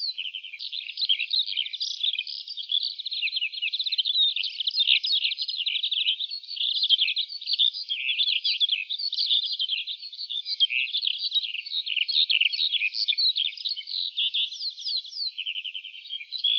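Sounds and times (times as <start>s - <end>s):
lark singing: 0.0s - 16.5s.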